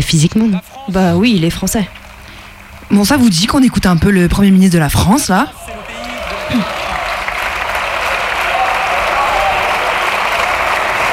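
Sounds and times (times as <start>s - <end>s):
speech: 0.0s - 2.0s, 2.9s - 5.6s, 6.5s - 6.8s
audience applause: 5.5s - 11.1s.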